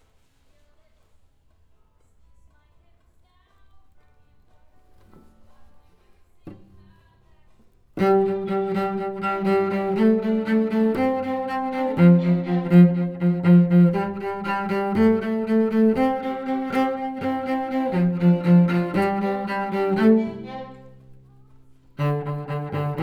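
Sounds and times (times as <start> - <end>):
cello: 4.9 - 23.0.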